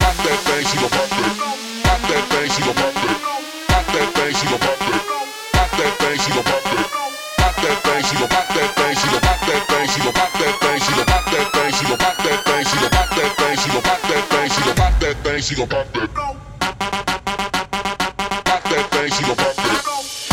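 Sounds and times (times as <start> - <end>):
130 bpm music track: 0.0 - 20.3.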